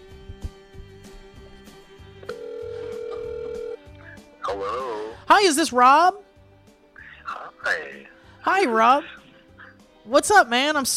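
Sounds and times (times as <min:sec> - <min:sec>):
outgoing phone call ringing tone: 0:02.2 - 0:03.9
speech: 0:04.5 - 0:06.2, 0:08.4 - 0:09.2, 0:10.1 - 0:10.9.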